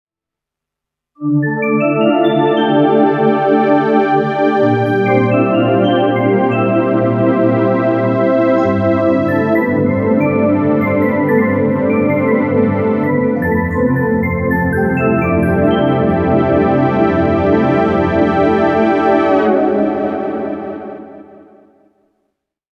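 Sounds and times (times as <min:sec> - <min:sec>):
synth: 0:01.2 - 0:21.9.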